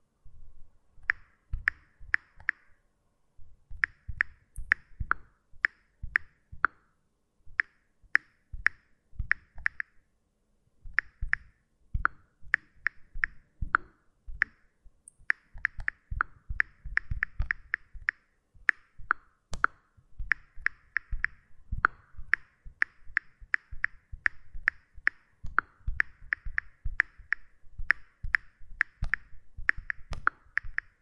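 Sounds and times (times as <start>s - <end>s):
iPhone keypad tapping: 1.0s - 2.7s, 3.8s - 6.8s, 7.6s - 10.0s, 10.9s - 14.6s, 15.2s - 30.9s.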